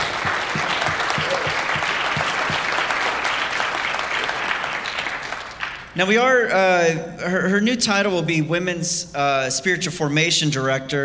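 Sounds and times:
audience clapping: 0.0 - 6.0
speech: 6.0 - 11.0.

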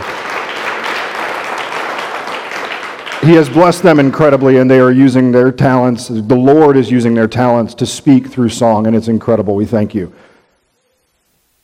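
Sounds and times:
audience applause: 0.0 - 4.2
speech: 3.2 - 10.3.

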